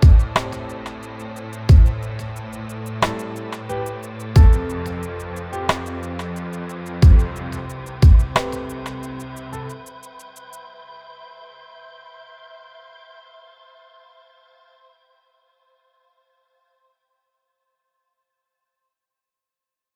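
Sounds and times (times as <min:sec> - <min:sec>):
moody piano music: 0:00.0 - 0:09.9.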